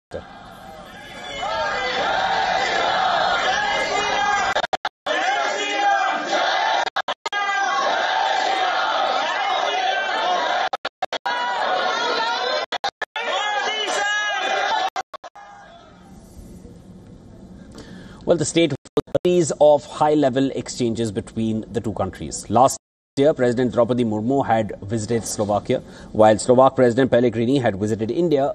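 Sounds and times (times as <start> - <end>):
speech: 0.1 - 0.3, 18.3 - 28.5
crowd of Indian diaspora cheering and chattering to welcome the Prime Minister: 0.1 - 16.2.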